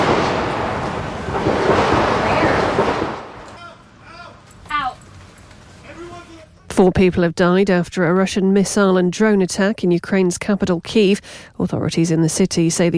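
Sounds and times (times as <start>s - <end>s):
loud dense rattle of gunshots: 0.0s - 3.5s
speech: 6.8s - 12.9s.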